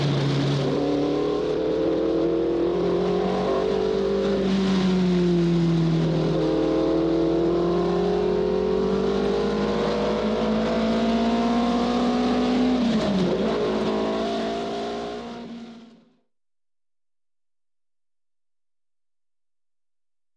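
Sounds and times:
motorcycle revving and driving: 0.0 - 16.2.

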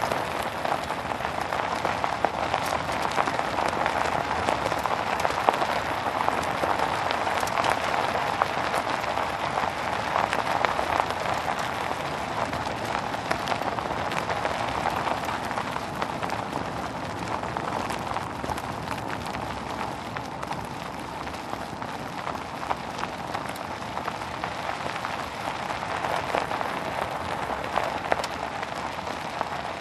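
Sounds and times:
car driving on gravel with open window: 0.0 - 29.8.

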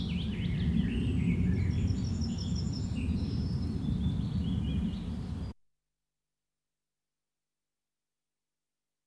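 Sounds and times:
airplane: 0.0 - 5.5
nature ambience on a field: 0.0 - 5.6.

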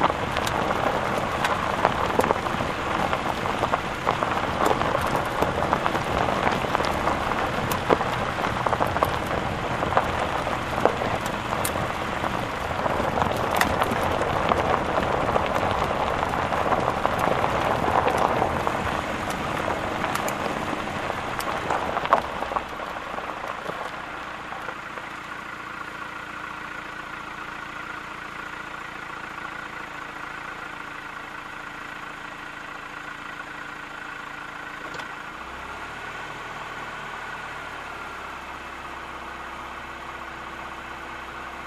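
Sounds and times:
car driving on dirt road: 0.0 - 41.6.

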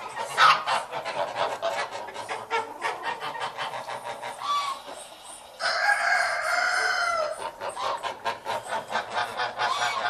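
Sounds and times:
chickens clucking and calling in a dense overlapping chorus: 0.0 - 10.0.

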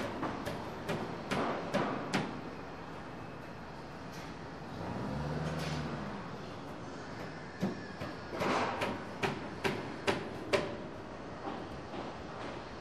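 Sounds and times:
construction site ambience: 0.0 - 12.8.

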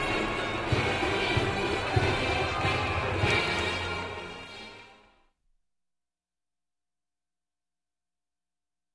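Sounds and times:
brass band parade in a city: 0.0 - 5.1.

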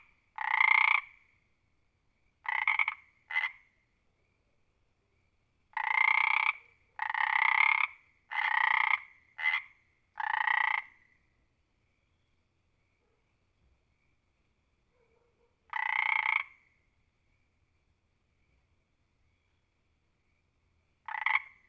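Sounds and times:
frog giving loud rasping croaks: 0.0 - 1.2, 2.4 - 3.7, 5.7 - 11.1, 15.7 - 16.7, 21.0 - 21.6.

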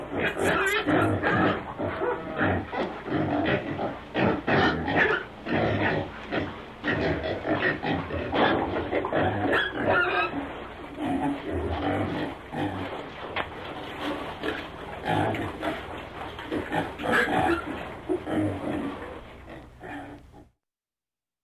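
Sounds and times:
pigs grunting and squealing: 0.0 - 20.5
shuffling and rustling: 10.4 - 19.5.

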